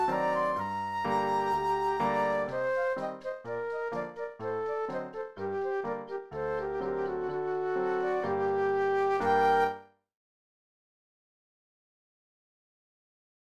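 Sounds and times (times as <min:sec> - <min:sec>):
classical flute duet: 0:00.0 - 0:09.9
piano in classical piece: 0:00.0 - 0:10.0.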